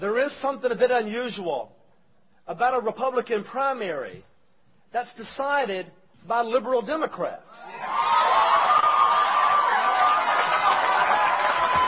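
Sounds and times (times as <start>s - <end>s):
speech: 0.0s - 1.8s, 2.5s - 4.3s, 4.9s - 8.4s
large crowd cheering and applauding: 7.7s - 11.8s.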